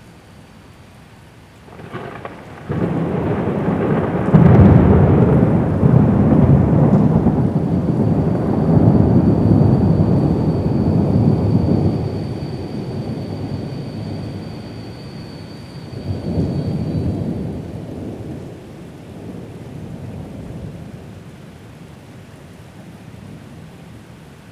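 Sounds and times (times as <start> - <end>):
rain in Genova at night: 0.0 - 24.5
thunder in Genova at night: 1.7 - 21.0.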